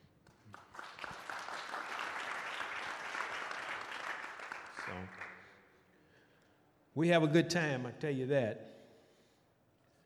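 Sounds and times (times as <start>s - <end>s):
audience applause: 0.5s - 5.4s
speech: 5.0s - 5.2s, 7.0s - 8.7s.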